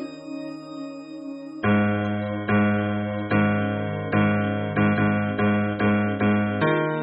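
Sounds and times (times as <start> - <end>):
hymn bass: 1.7 - 6.9.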